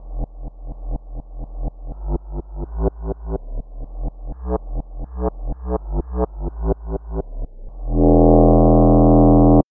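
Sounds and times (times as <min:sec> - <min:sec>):
bass clarinet: 0:07.8 - 0:09.6.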